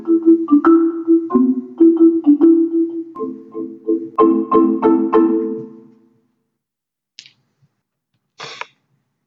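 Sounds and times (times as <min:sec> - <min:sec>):
marimba: 0:00.0 - 0:06.0.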